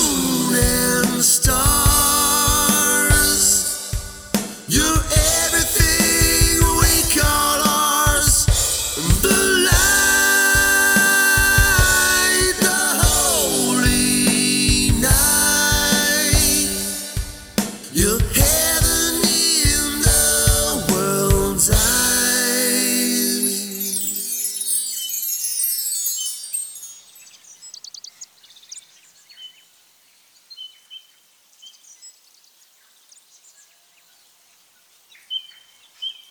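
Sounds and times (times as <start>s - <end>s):
person singing: 0.0s - 24.9s.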